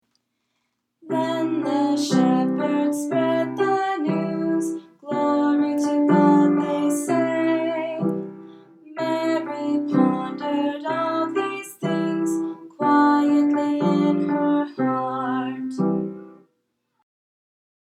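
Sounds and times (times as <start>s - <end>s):
person singing recitative: 1.0s - 8.1s, 8.9s - 15.8s.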